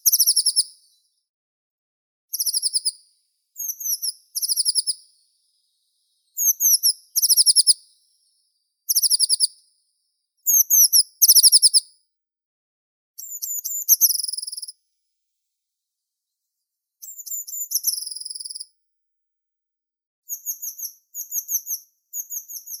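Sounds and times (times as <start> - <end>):
blue tit Cyanistes caeruleus: 0.0 - 1.0, 2.3 - 8.0, 8.9 - 9.6, 10.4 - 12.0, 13.2 - 14.8, 17.0 - 18.8, 20.3 - 22.7.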